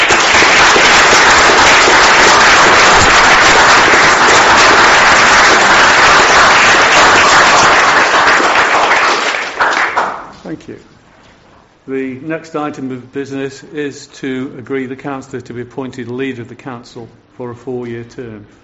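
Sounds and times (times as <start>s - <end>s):
councillors clapping in chamber: 0.0s - 10.5s
speech: 11.9s - 18.6s.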